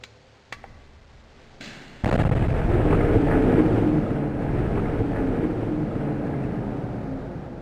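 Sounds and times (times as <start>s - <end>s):
bomb detonation explosion: 2.0s - 7.5s.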